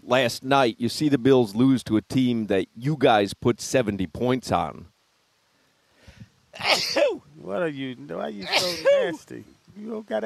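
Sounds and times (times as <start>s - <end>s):
speech: 0.1s - 4.9s, 6.6s - 10.2s
sneeze: 6.6s - 7.2s, 8.4s - 9.0s.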